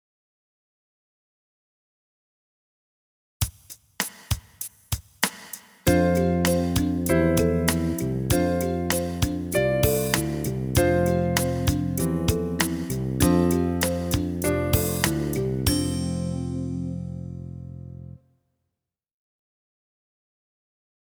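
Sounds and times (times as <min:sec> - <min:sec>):
slow piano: 0:05.9 - 0:18.2.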